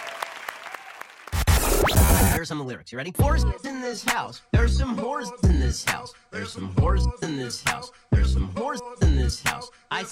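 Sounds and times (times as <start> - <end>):
applause: 0.0 - 1.4
cheering: 0.0 - 1.4
speech: 2.4 - 10.1.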